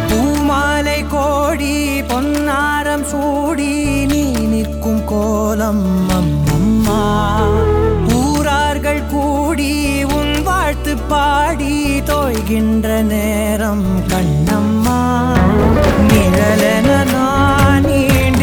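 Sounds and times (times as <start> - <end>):
male vocals in Tamil: 0.1 - 18.4.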